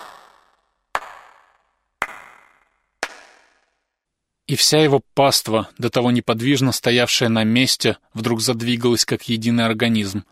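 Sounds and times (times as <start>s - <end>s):
four hand claps: 1.0s - 1.4s, 2.0s - 3.6s
speech: 4.5s - 10.3s.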